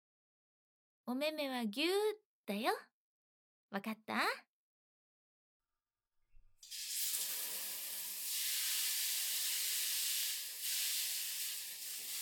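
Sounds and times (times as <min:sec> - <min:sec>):
speech: 0:01.1 - 0:02.9, 0:03.7 - 0:04.5
shower water running: 0:06.6 - 0:12.2.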